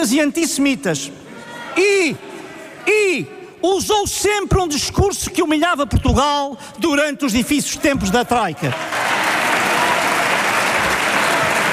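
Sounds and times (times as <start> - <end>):
speech: 0.0 - 9.0
sustained parliamentary applause from a large group: 8.6 - 11.7.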